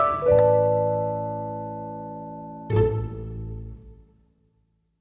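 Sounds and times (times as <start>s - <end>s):
bell: 0.0s - 3.2s.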